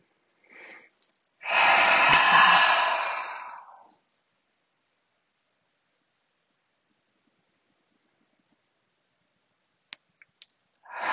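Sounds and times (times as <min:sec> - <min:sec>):
person exhaling through mouth during a guided breathing exercise: 0:00.5 - 0:03.9, 0:10.8 - 0:11.1.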